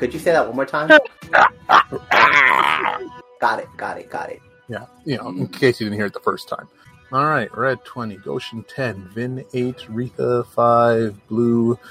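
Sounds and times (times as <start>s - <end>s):
speech: 0.0s - 11.9s
loud creature screech: 1.3s - 3.2s.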